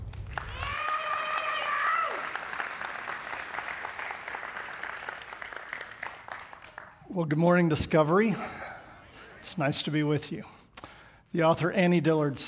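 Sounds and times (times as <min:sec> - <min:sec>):
audience applause welcoming a speaker: 0:00.0 - 0:07.1
person cheering: 0:00.4 - 0:02.4
speech: 0:07.2 - 0:08.6, 0:09.6 - 0:10.6, 0:11.3 - 0:12.4.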